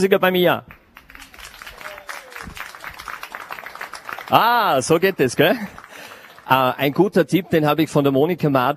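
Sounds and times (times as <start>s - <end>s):
speech: 0.0s - 0.8s, 4.3s - 5.8s, 6.5s - 8.7s
audience applause: 1.0s - 7.3s.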